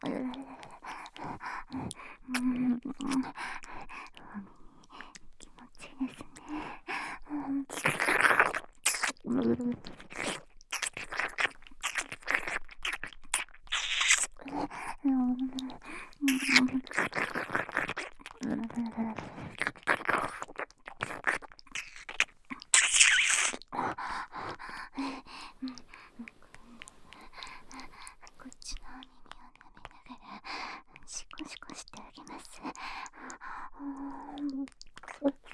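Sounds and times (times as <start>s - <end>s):
ear licking: 0.3s - 23.7s, 25.6s - 35.5s
loud oral slurping: 9.9s - 14.4s, 19.4s - 23.6s.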